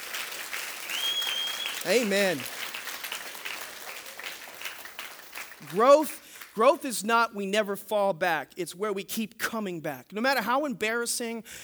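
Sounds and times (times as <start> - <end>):
audience clapping: 0.0 - 6.9
speech: 1.8 - 2.6, 5.7 - 11.6.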